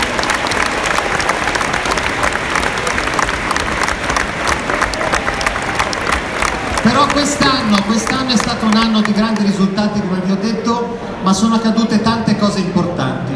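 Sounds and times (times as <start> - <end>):
sustained applause from a large audience: 0.0 - 9.7
faint crowd murmur: 0.0 - 13.3
speech: 6.8 - 13.3.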